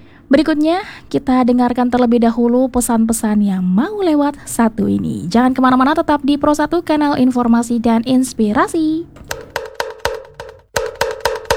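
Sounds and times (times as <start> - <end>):
speech: 0.3 - 9.5
kentongan slit drum being struck: 9.2 - 11.5.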